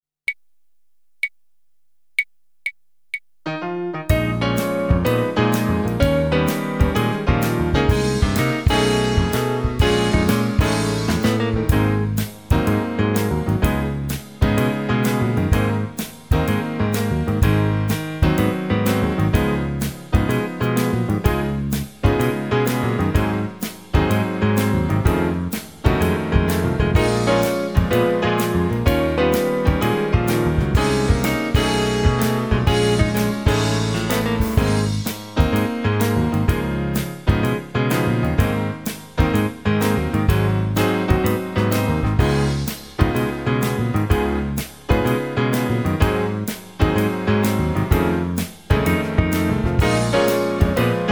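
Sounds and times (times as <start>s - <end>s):
bebop jazz tune: 3.5s - 51.1s.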